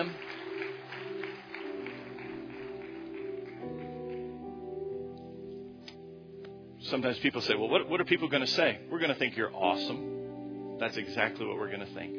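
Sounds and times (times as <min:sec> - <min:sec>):
audience clapping hands: 0:00.0 - 0:04.4
speech: 0:06.9 - 0:10.1, 0:10.8 - 0:12.1.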